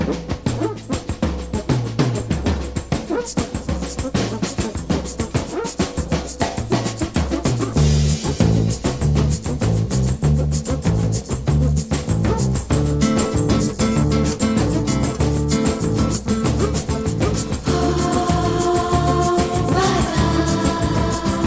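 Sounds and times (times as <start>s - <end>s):
folk celebration music: 0.1s - 21.4s.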